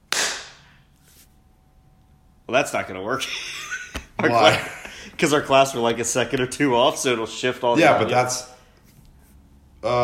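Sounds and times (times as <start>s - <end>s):
hand clap: 0.0s - 0.7s
speech: 2.5s - 3.6s, 4.2s - 8.5s, 9.8s - 10.0s
laughter: 3.2s - 5.2s.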